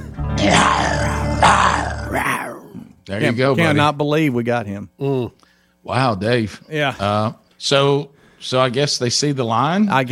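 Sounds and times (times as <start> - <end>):
man imitating a lion growling: 0.4 - 3.0
speech: 3.1 - 10.1.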